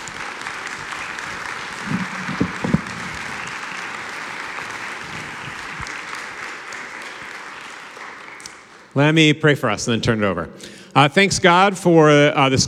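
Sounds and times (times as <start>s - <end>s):
audience clapping to welcome a speaker: 0.0s - 9.0s
speech: 9.0s - 12.6s.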